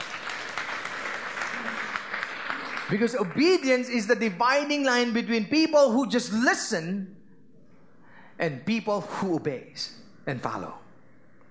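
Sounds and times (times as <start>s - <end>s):
audience applause: 0.0s - 3.6s
speech: 2.9s - 7.2s, 8.4s - 10.8s.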